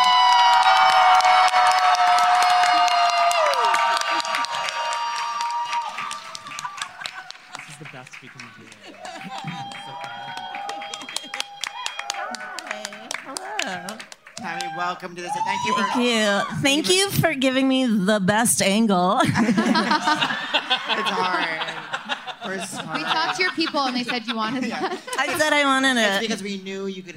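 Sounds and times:
live comedy show audience applauding and cheering: 0.0s - 17.1s
laughter: 6.1s - 14.0s, 19.2s - 26.4s
speech: 15.0s - 21.9s, 22.5s - 27.1s.

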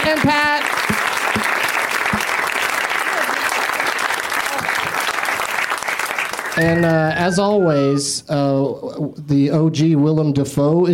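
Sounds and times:
audience applauding the guests of a show: 0.0s - 8.0s
speech: 0.1s - 0.5s, 6.6s - 10.9s.

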